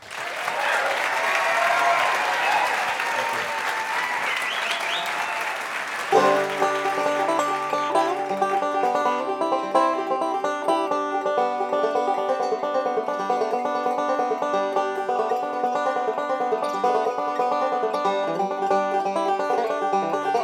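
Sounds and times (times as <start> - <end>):
audience applauding to welcome a musician to the stage: 0.0 - 9.3
plucked acoustic string music: 6.2 - 20.4.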